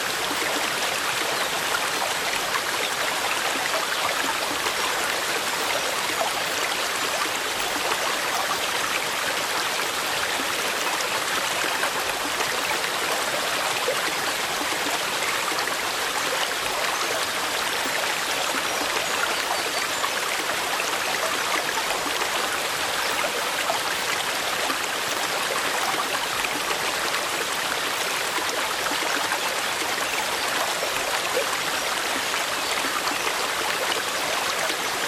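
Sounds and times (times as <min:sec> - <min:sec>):
mountain stream flowing: 0:00.0 - 0:35.0.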